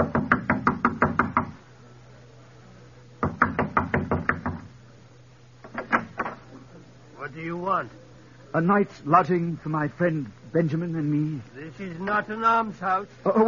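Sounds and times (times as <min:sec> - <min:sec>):
hard knocking on a door: 0:00.0 - 0:01.5, 0:03.2 - 0:04.7
speech: 0:07.8 - 0:13.4.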